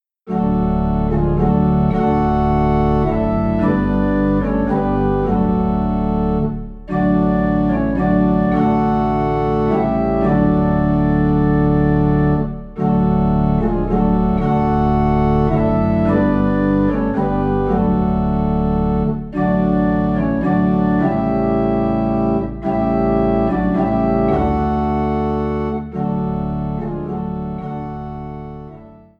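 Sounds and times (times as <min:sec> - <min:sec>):
low organ note in D: 0:00.3 - 0:29.1.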